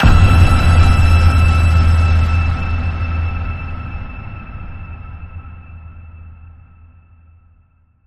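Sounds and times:
ping tone at E: 0.0s - 7.3s.

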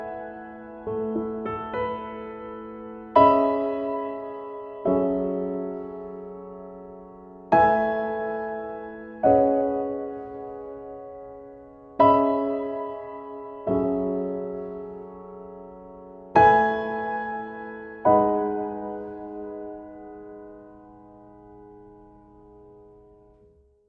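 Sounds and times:
solo piano: 0.0s - 23.8s.

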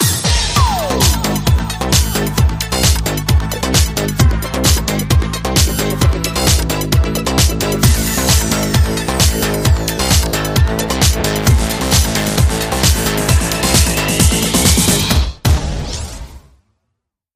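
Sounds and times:
electro music: 0.0s - 15.6s.

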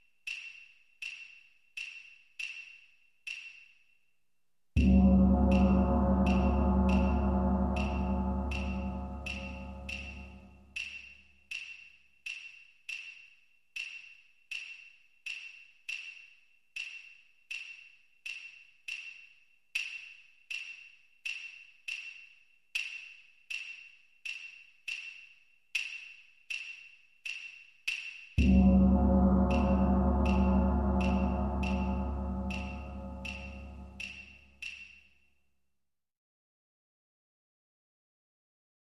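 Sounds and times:
Japanese music loop: 4.8s - 35.0s.

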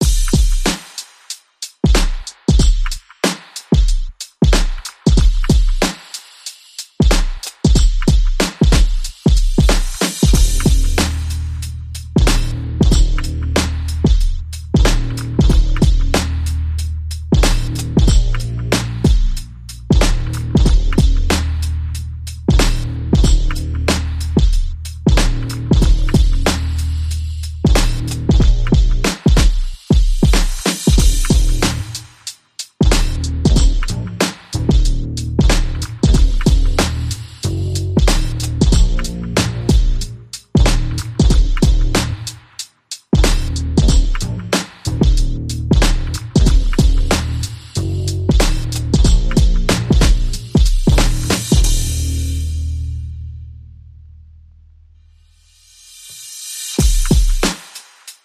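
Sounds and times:
drums: 0.0s - 53.1s, 55.5s - 58.2s
bass: 10.3s - 29.2s, 31.0s - 32.2s, 32.8s - 42.5s, 43.2s - 56.0s.

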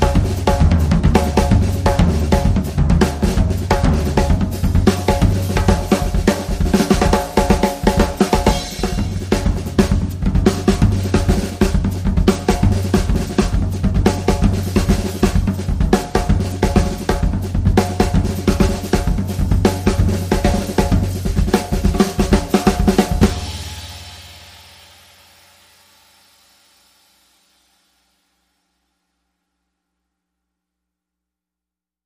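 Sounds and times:
fast samba music: 0.0s - 24.7s.

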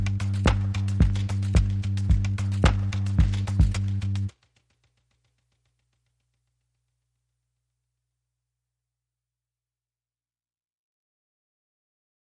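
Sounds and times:
bass: 0.0s - 4.3s
drums: 0.0s - 5.4s.

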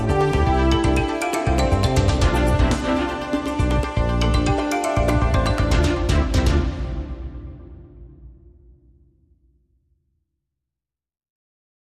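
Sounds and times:
commercial break segue music: 0.0s - 8.6s.

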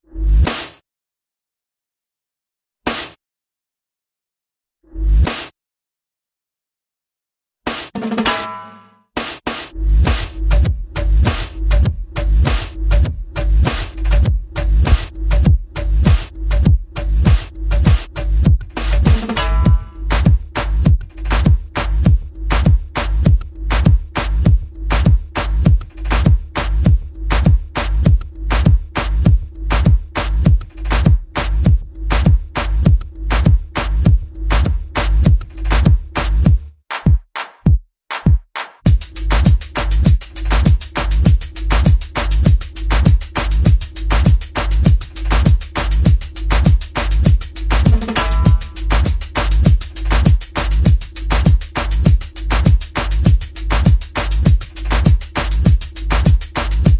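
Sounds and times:
percussion and effects: 0.2s - 0.8s, 5.0s - 5.6s, 7.7s - 56.9s.

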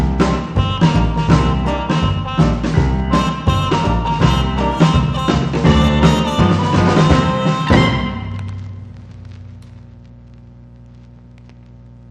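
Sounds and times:
instrumental music: 0.0s - 8.8s.

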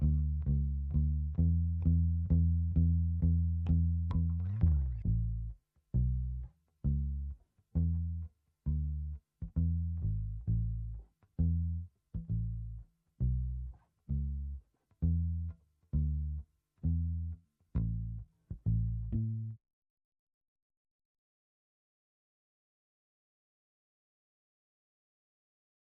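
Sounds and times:
bass: 0.0s - 19.6s.

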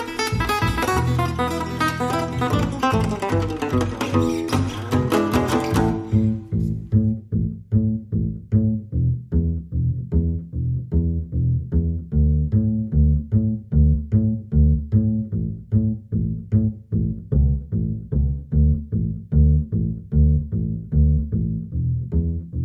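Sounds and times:
lead guitar: 0.0s - 7.0s
bass guitar: 0.0s - 22.6s.

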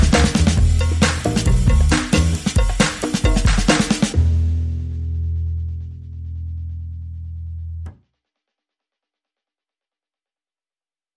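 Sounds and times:
percussion: 0.0s - 6.1s
bass: 0.0s - 8.0s.

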